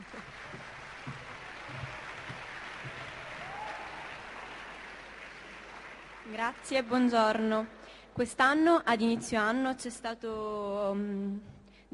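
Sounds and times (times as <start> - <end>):
audience applause: 0.0 - 7.2
speech: 6.4 - 11.9.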